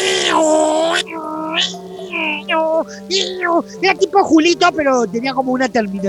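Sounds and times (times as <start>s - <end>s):
voice imitating an ambulance siren: 0.0s - 4.0s
speech: 2.8s - 6.0s.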